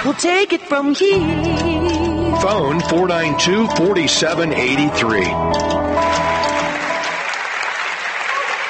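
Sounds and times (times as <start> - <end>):
speech: 0.1 - 6.3
crowd applause for injured player standing: 6.0 - 8.6.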